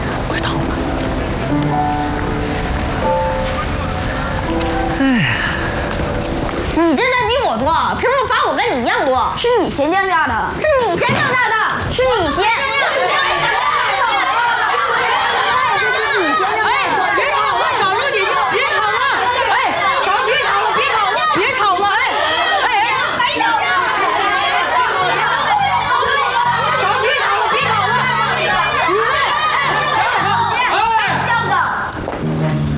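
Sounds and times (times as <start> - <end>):
many children chattering, playing and shouting: 0.0 - 32.7
children laughing: 2.4 - 6.7, 12.6 - 31.4
speech: 9.2 - 13.2.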